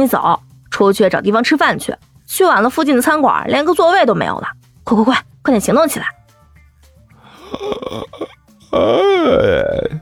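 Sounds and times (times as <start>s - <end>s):
speech: 0.0s - 6.2s, 7.5s - 10.0s
person yawning with groaning sliding pitch: 7.2s - 10.0s.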